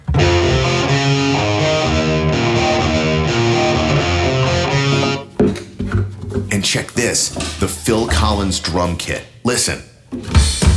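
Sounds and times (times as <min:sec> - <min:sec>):
electric guitar playing: 0:00.0 - 0:05.4
speech: 0:06.7 - 0:10.6.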